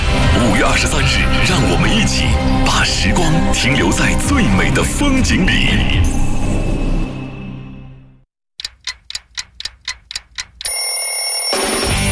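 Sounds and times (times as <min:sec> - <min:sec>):
music: 0:00.0 - 0:06.4, 0:11.5 - 0:12.1
speech: 0:00.6 - 0:06.3
alarm clock ringing: 0:08.9 - 0:12.1.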